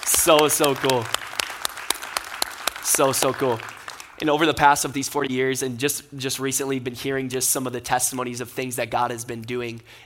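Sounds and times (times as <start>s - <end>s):
crowd applauding: 0.0s - 4.3s
speech: 0.2s - 1.2s, 3.0s - 10.0s.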